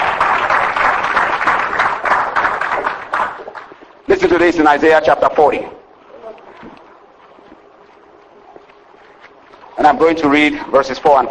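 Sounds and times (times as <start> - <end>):
audience clapping hands: 0.0 - 4.0
speech: 4.2 - 5.8, 9.8 - 11.2.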